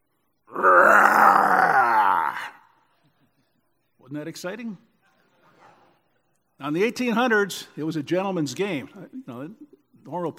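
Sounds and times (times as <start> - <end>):
person imitating a tiger's roar as a cheer: 0.5 - 2.6
speech: 4.1 - 4.9, 6.6 - 10.3.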